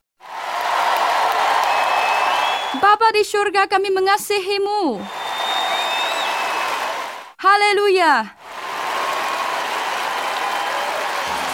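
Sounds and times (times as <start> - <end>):
congregation applause at an evening church service: 0.2 - 2.8, 5.0 - 7.4, 8.4 - 11.5
speech: 2.8 - 5.2, 7.4 - 8.4.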